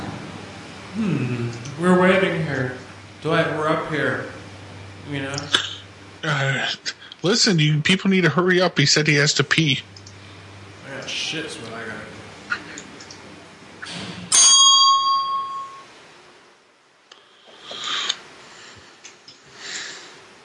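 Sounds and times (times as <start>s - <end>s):
speech: 1.0s - 4.3s, 5.1s - 5.6s, 6.2s - 10.0s, 11.1s - 11.9s
corded telephone ringing: 14.3s - 15.9s.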